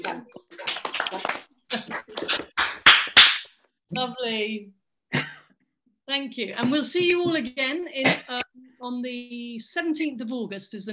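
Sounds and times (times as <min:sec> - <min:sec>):
speech: 0:00.0 - 0:00.4, 0:04.0 - 0:04.8, 0:06.1 - 0:10.9
group clapping over unmuted microphones: 0:00.0 - 0:03.5.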